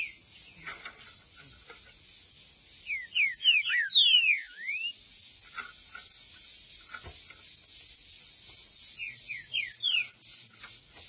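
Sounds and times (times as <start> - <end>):
green-winged saltator singing: 0.0 - 0.7, 2.6 - 5.2, 8.3 - 11.0.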